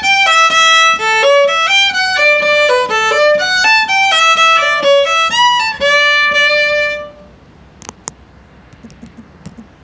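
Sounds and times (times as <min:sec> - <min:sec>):
fiddle playing a fast polka: 0:00.0 - 0:07.2.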